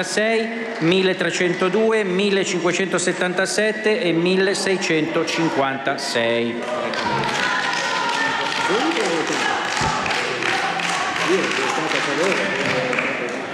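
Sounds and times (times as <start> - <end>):
speech: 0.0 - 7.4, 11.3 - 12.8
applause in the Senate chamber: 6.6 - 13.5.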